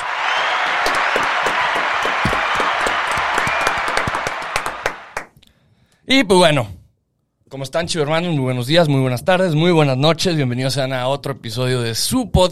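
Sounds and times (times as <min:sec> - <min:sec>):
applause: 0:00.0 - 0:05.4
speech: 0:06.1 - 0:06.8, 0:07.5 - 0:12.5.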